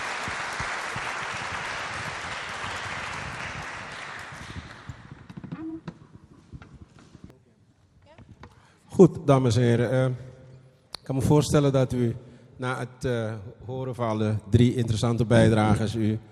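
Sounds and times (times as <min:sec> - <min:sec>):
audience applause: 0:00.0 - 0:05.3
speech: 0:09.0 - 0:10.3, 0:11.1 - 0:16.3.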